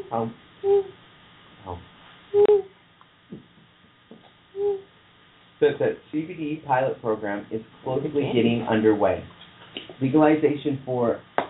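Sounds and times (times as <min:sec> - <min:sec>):
owl hooting: 0:00.0 - 0:01.0, 0:01.7 - 0:02.8, 0:04.5 - 0:04.9
speech: 0:00.1 - 0:01.0, 0:01.6 - 0:02.5, 0:05.6 - 0:09.4, 0:10.0 - 0:11.3.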